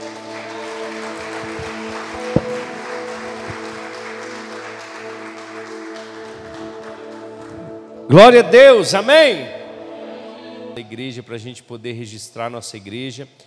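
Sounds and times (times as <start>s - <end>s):
audience applauding: 0.0s - 8.0s
speech: 8.1s - 9.6s, 10.9s - 13.4s.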